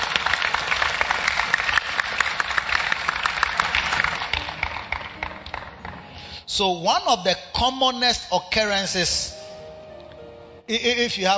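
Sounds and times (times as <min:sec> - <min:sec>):
audience clapping: 0:00.0 - 0:06.1
speech: 0:06.5 - 0:09.4, 0:10.7 - 0:11.3.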